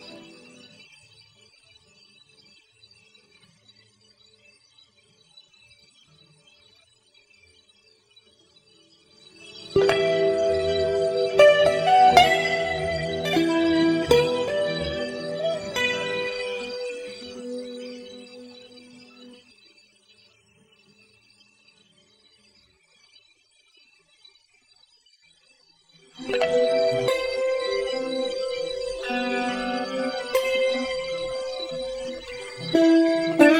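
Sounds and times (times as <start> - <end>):
dry solo guitar: 0.0 - 0.6, 9.7 - 19.4, 26.2 - 33.5.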